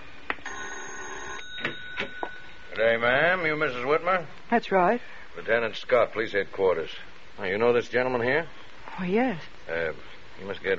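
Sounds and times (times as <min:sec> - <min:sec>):
doorbell ringing with a bright electric ring: 0:00.4 - 0:03.1
speech: 0:02.8 - 0:10.7.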